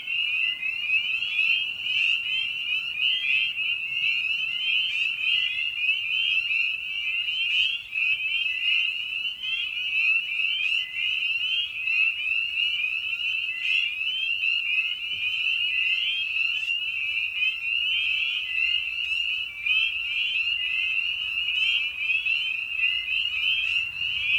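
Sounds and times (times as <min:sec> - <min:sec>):
spring peeper chorus peeping: 0:00.0 - 0:24.3.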